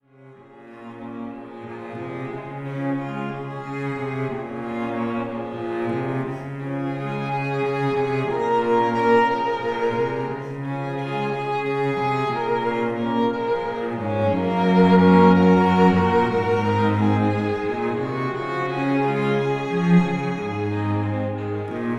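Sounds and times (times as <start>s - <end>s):
string quartet: 0.0s - 21.9s.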